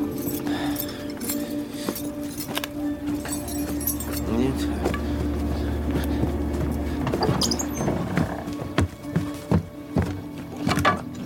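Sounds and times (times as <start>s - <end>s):
keys jangling as taken off a post: 0.0s - 4.4s
low hum: 0.0s - 11.2s.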